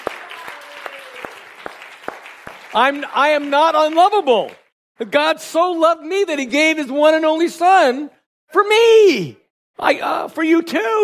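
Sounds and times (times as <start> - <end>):
audience clapping in rhythm: 0.0 - 4.8
speech: 2.7 - 11.0.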